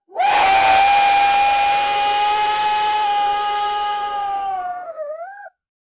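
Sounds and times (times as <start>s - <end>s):
kaiju roaring loudly: 0.2s - 4.8s.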